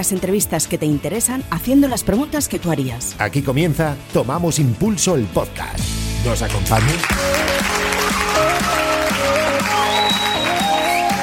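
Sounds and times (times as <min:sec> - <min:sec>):
speech: 0:00.0 - 0:07.6
applause: 0:06.4 - 0:11.2.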